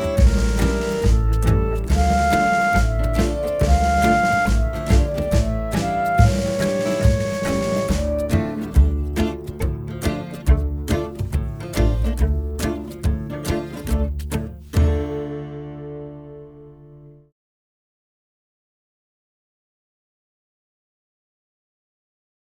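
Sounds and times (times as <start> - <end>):
oriental-style music: 0.0 - 16.9.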